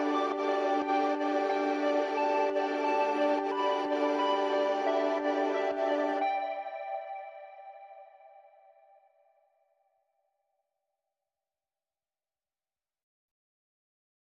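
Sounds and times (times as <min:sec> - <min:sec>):
ambient music: 0:00.0 - 0:09.0.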